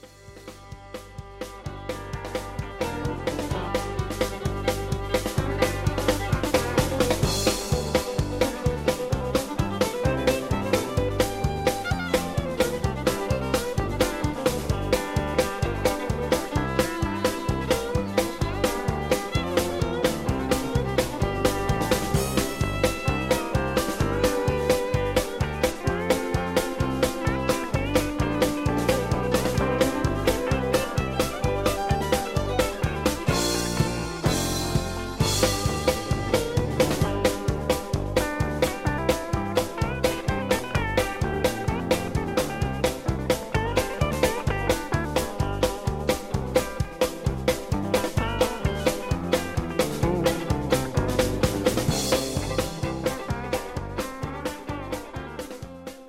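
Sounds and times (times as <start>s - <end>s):
instrumental music: 0.0s - 56.0s.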